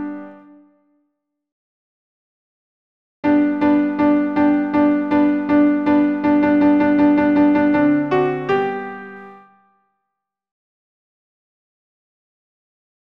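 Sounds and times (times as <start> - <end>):
alto piano accompaniment: 0.0 - 0.6, 3.2 - 9.7.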